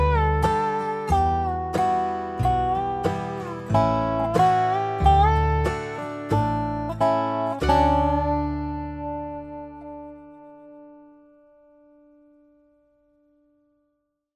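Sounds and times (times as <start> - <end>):
backing track: 0.0 - 10.8
basic dobro melody: 0.0 - 12.6.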